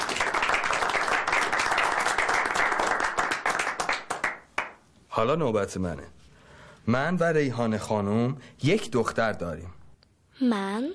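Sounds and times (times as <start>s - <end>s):
audience clapping hands in honor of a man: 0.0s - 4.7s
speech: 5.2s - 6.2s, 6.8s - 9.8s, 10.4s - 10.9s.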